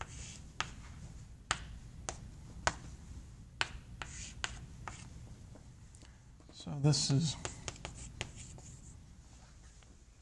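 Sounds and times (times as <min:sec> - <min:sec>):
writing on a board or paper during a lecture: 0:00.0 - 0:00.9, 0:01.5 - 0:02.8, 0:03.6 - 0:05.1, 0:07.4 - 0:09.0
speech: 0:06.6 - 0:07.5.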